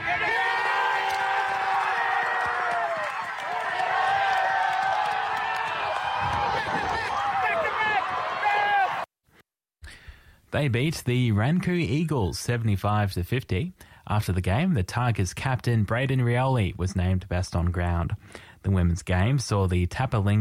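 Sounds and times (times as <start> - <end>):
football grand final crowd cheering: 0.0 - 9.1
speech: 10.5 - 20.4.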